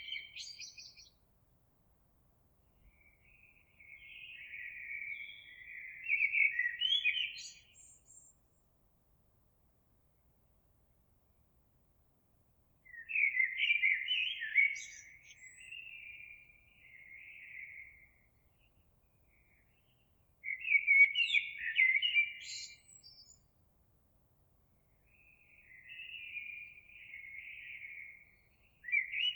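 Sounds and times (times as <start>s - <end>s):
Eurasian blackbird singing: 0.0s - 1.2s, 2.8s - 8.5s, 12.9s - 23.5s, 24.8s - 29.3s.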